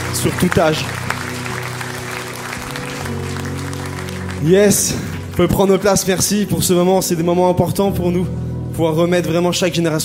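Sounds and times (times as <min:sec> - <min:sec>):
audience applauding: 0:00.0 - 0:05.9
speech: 0:00.2 - 0:01.0, 0:04.4 - 0:10.0.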